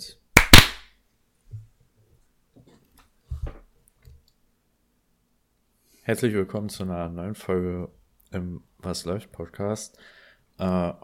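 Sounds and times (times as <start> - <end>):
hand clap: 0.4 - 0.9
speech: 6.1 - 11.0.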